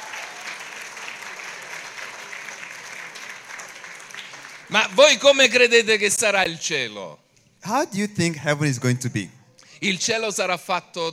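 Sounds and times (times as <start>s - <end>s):
congregation applause at a church service: 0.0s - 5.4s
speech: 4.7s - 11.1s.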